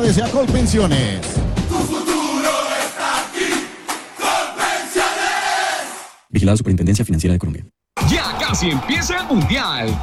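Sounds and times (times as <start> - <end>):
speech: 0.0 - 1.4, 6.4 - 10.0
stadium crowd cheering: 1.7 - 6.2, 8.0 - 10.0.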